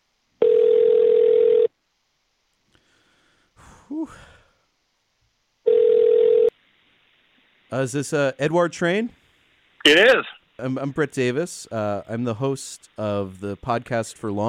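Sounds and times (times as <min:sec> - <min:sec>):
outgoing phone call ringback tone: 0:00.4 - 0:01.7, 0:05.7 - 0:06.5
person sighing: 0:02.8 - 0:04.7
speech: 0:04.0 - 0:04.3, 0:07.7 - 0:09.2, 0:09.8 - 0:14.4.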